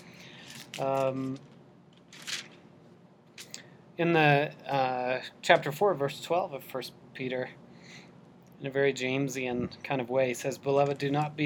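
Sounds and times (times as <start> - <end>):
thin book pages turning: 0.4 - 2.6
speech: 0.8 - 1.5, 4.0 - 7.6, 8.6 - 11.4.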